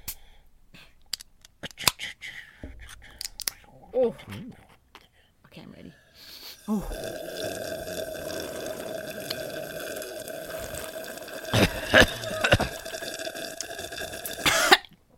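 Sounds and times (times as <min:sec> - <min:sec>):
speech: 0:04.0 - 0:04.6, 0:06.7 - 0:07.4
sipping and slurping a drink: 0:06.5 - 0:14.5.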